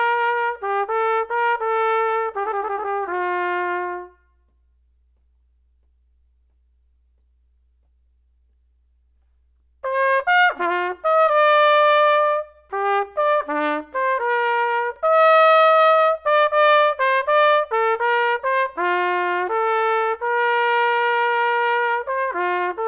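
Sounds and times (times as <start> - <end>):
trumpet solo: 0.0 - 4.6, 9.8 - 22.8.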